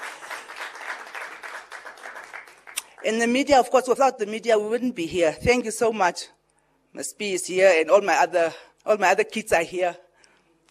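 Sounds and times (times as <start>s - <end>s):
audience applause: 0.0s - 2.8s
speech: 3.0s - 10.0s.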